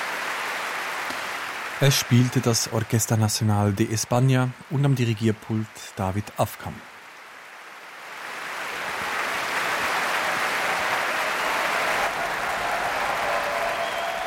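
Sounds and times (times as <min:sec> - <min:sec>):
enthusiastic concert audience applauding at the BBC Proms: 0:00.0 - 0:03.5, 0:08.1 - 0:14.2
speech: 0:01.8 - 0:06.9.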